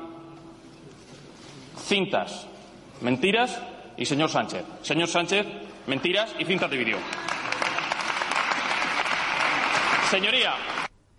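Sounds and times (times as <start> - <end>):
speech: 1.9 - 7.3, 10.1 - 11.1
timid applause in parliament: 6.9 - 10.9.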